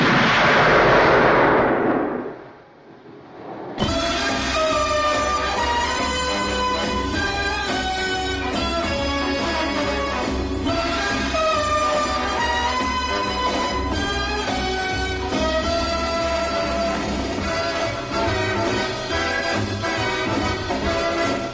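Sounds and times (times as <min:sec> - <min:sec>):
gunshot from a film's opening sequence: 0:00.0 - 0:02.6
orchestral music: 0:03.8 - 0:21.5.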